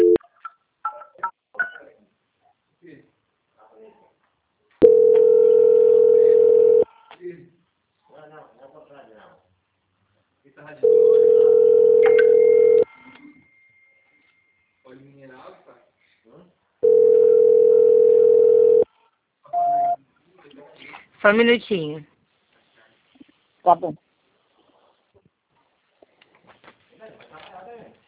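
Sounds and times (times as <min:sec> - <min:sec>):
telephone ringback tones while a phone call is being transferred: 0:00.0 - 0:00.2, 0:04.8 - 0:06.8, 0:10.8 - 0:13.1, 0:16.8 - 0:18.8
speech: 0:21.3 - 0:22.1, 0:23.7 - 0:24.0.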